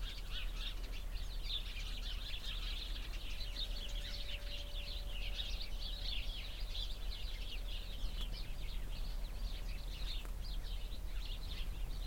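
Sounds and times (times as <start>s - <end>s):
many sparrows chattering in a bush beside a cow pasture: 0.0s - 12.0s.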